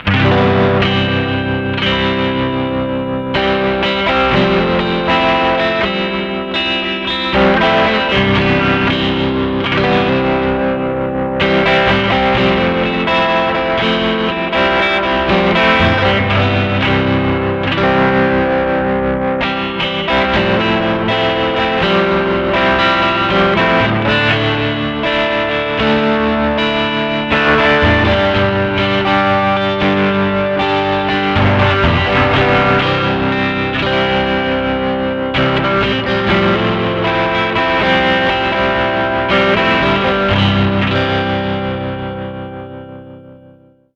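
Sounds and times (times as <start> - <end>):
slow overdriven guitar: 0.0 - 43.9.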